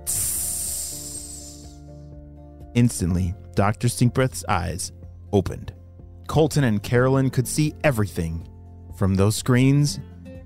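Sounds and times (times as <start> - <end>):
sizzling hiss of water on fire: 0.0 - 1.8
speech: 2.8 - 10.1.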